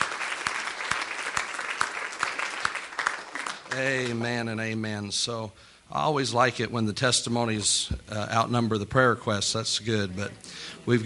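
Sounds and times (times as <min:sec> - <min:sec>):
audience clapping: 0:00.0 - 0:04.3
speech: 0:03.7 - 0:11.0.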